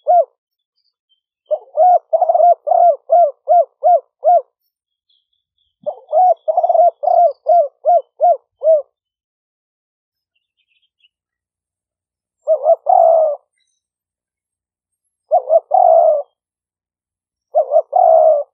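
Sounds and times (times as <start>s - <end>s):
spotted dove cooing: 0.0s - 0.4s, 1.5s - 4.5s, 5.8s - 9.0s, 12.4s - 13.5s, 15.2s - 16.4s, 17.5s - 18.5s.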